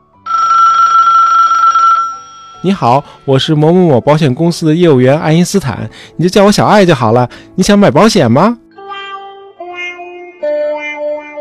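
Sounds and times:
mobile phone ringing: 0.2s - 3.0s
speech: 2.6s - 8.6s.

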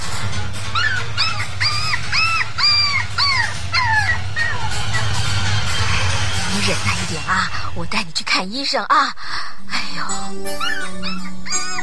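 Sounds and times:
low rumble: 0.1s - 8.3s
injured dog whimpering: 0.7s - 5.2s, 10.5s - 11.8s
speech: 6.7s - 11.6s.

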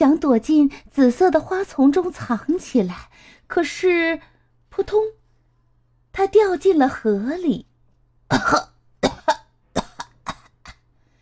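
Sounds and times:
speech: 0.0s - 5.2s, 6.1s - 7.7s, 8.3s - 8.7s
coughing after choking on water: 8.3s - 10.9s.

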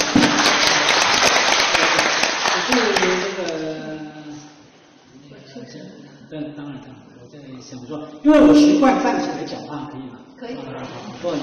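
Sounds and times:
audience applause: 0.0s - 3.5s
speech: 6.3s - 11.4s.

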